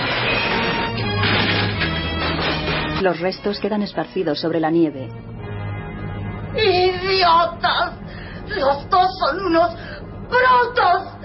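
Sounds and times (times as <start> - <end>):
van crashing into a car on a snowy hillside: 0.0 - 3.0
speech: 3.0 - 5.3, 6.6 - 11.1.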